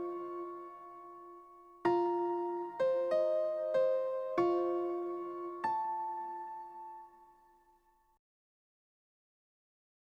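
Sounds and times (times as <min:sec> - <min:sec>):
suspense piano production music: 0:00.0 - 0:07.8.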